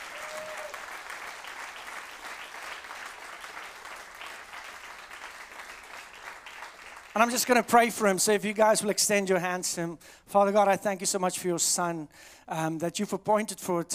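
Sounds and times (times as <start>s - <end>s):
audience applause: 0.0s - 7.7s
speech: 7.2s - 13.9s.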